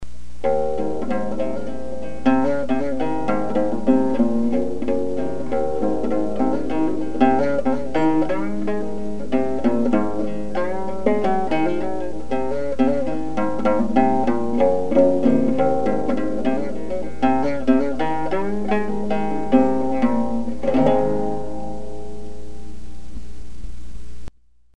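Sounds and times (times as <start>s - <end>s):
gourd banjo: 0.4s - 22.9s.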